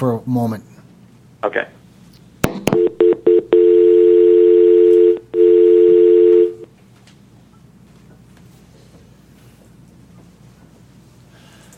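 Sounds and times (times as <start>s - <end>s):
speech: 0.0s - 0.7s, 1.4s - 1.8s
telephone dialing beeps: 2.8s - 6.6s.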